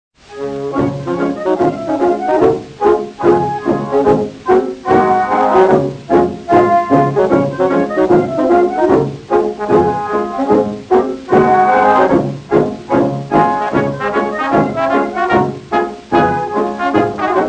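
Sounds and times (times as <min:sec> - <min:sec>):
waltz music: 0:00.2 - 0:17.4.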